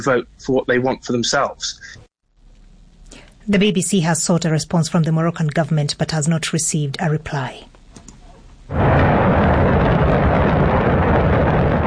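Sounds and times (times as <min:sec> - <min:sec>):
speech: 0:00.0 - 0:02.0, 0:03.4 - 0:07.7, 0:08.7 - 0:09.1
Shenzhou 23 rocket lifting off from the Jingguan Launch Center in Inner Mongolia: 0:08.7 - 0:11.8.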